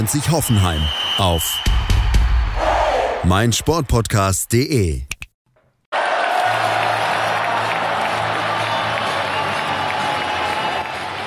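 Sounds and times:
speech: 0:00.0 - 0:01.8, 0:03.2 - 0:05.1
large stadium crowd of football fans roaring and chanting: 0:02.4 - 0:03.3, 0:05.9 - 0:11.2.

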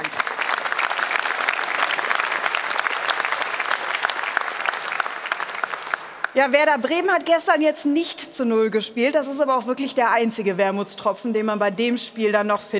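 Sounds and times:
audience applause: 0:00.0 - 0:06.4
speech: 0:06.4 - 0:12.7.

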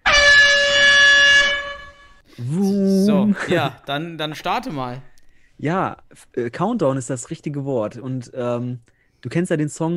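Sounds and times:
air horn blast blown to start a countdown: 0:00.0 - 0:02.3
speech: 0:03.3 - 0:09.9.

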